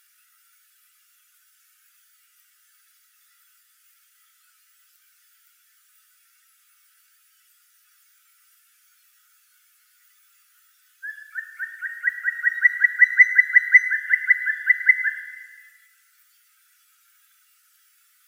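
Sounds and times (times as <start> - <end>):
black woodpecker Dryocopus martius: 11.0 - 15.8.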